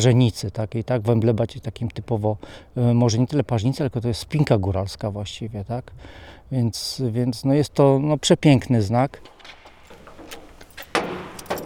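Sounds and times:
speech: 0.0 - 9.6
keys jangling while unlocking a hangar workshop door at the Aeroklub Tatrzański: 9.4 - 11.6.

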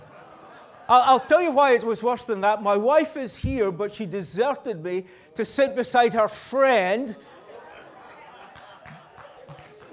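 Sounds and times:
laughter: 0.0 - 2.0, 6.5 - 9.9
speech: 0.9 - 7.4
audience clapping: 8.2 - 9.9.

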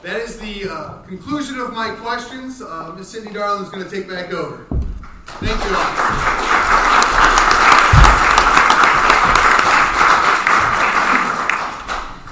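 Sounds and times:
speech: 0.0 - 4.8, 5.4 - 6.4
audience applause: 5.3 - 12.2.

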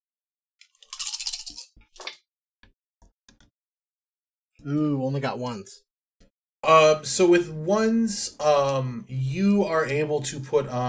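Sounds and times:
five dice being rolled: 0.6 - 2.1
speech: 4.6 - 5.9, 6.6 - 10.8.

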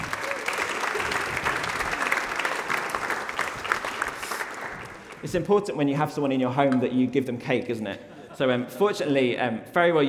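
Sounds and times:
audience applause: 0.0 - 5.3
speech: 5.2 - 10.0.

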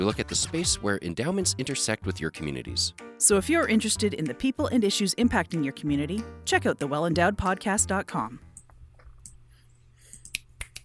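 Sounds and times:
speech: 0.0 - 8.5
finger snaps: 10.1 - 10.8.

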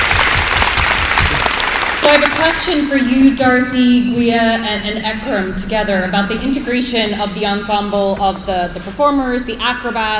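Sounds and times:
audience round of applause: 0.0 - 2.5
speech: 2.1 - 10.1.

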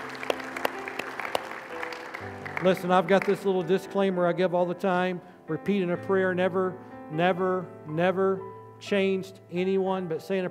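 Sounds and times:
crowd clapping: 0.0 - 3.6
speech: 2.6 - 10.4.

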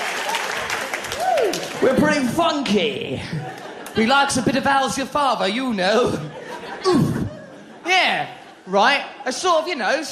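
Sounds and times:
crowd clapping: 0.0 - 2.3
single voiced whoop or whistle: 1.2 - 1.6
speech: 1.5 - 7.1, 7.9 - 10.1
laughter: 3.0 - 9.5.

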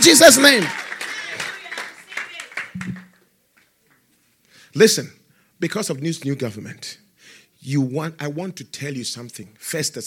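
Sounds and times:
speech: 0.0 - 0.8, 4.8 - 7.0, 7.6 - 10.0
audience clapping: 0.0 - 4.0.

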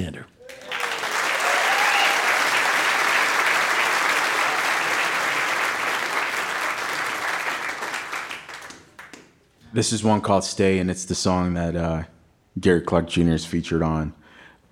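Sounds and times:
audience applause welcoming a musician to a live music stage: 0.4 - 9.3
speech: 9.8 - 14.2.

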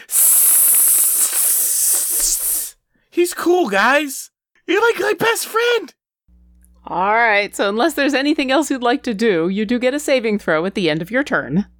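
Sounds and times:
person imitating creature hiss: 0.0 - 2.8
speech: 3.2 - 6.0, 6.8 - 11.7.

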